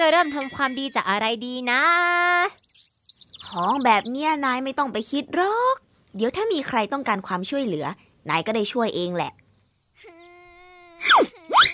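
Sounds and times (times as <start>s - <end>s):
speech: 0.1s - 2.7s, 3.5s - 9.4s
child standing and crying: 10.0s - 11.7s.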